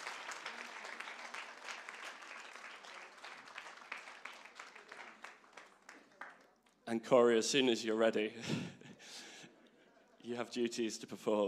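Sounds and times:
round of applause: 0.0s - 6.8s
speech: 6.9s - 8.8s, 10.3s - 11.4s.

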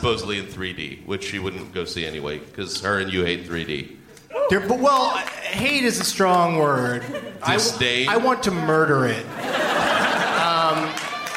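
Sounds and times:
speech: 0.0s - 9.6s
audience clapping: 4.8s - 7.0s, 10.1s - 11.3s
laughter: 6.7s - 11.3s.

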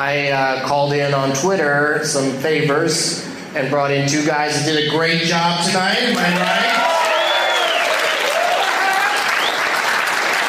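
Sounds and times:
speech: 0.0s - 6.9s
audience applause at the Waiting Room Lounge in Omaha, Nebraska: 6.2s - 10.4s
audience whistling: 7.0s - 8.4s, 9.1s - 9.7s.

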